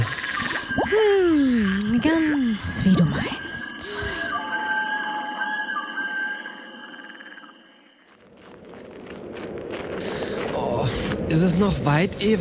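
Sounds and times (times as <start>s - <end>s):
humming tonal background: 0.0s - 10.5s
speech: 2.0s - 3.4s, 11.3s - 12.4s
footsteps on soft mountain ground: 8.0s - 12.4s.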